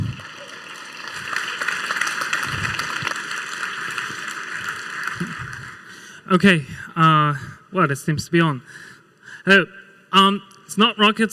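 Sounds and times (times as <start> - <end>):
audience applause: 0.0 - 6.1
speech: 6.3 - 11.3.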